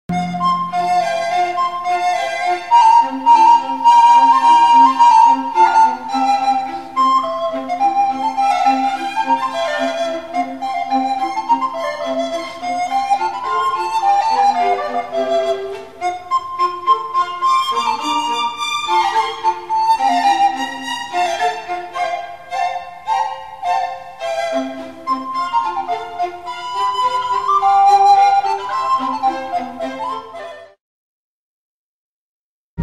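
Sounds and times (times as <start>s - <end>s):
flogera concerto in F: 0.1s - 30.8s.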